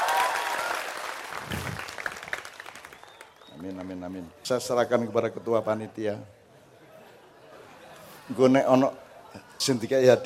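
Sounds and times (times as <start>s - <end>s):
audience applause at a gathering: 0.0s - 4.0s
speech: 3.6s - 6.4s, 8.3s - 10.2s.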